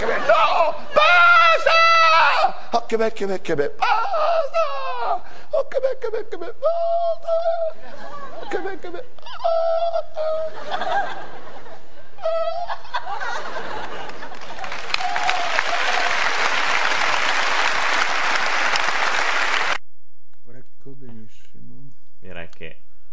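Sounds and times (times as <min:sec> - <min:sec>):
laughter: 0:00.0 - 0:02.4, 0:03.8 - 0:19.3
speech: 0:02.9 - 0:04.6, 0:05.6 - 0:11.3
audience applause: 0:13.3 - 0:19.8.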